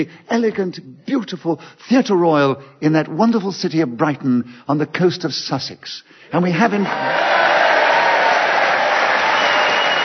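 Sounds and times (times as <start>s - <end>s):
speech: 0.0s - 7.6s
theatre audience applauding: 6.7s - 10.0s.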